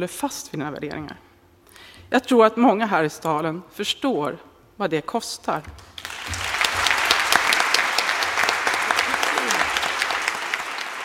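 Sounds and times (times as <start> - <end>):
speech: 0.0 - 5.9
applause in council chamber after councillors' speeches: 5.8 - 11.0.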